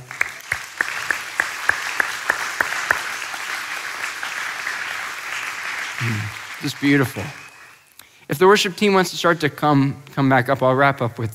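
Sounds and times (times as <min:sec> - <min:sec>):
audience applause: 0:00.0 - 0:07.9
sharp evenly spaced claps: 0:00.0 - 0:07.9
speech: 0:06.0 - 0:07.4, 0:08.3 - 0:11.3.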